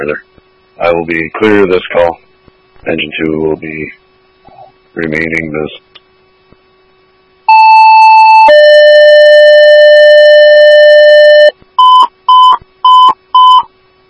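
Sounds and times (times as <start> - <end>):
speech: 0.0 - 2.2, 2.8 - 4.0, 5.0 - 5.9
dispatch all-call electronic paging tones: 7.5 - 13.7
short beeps: 7.5 - 13.7.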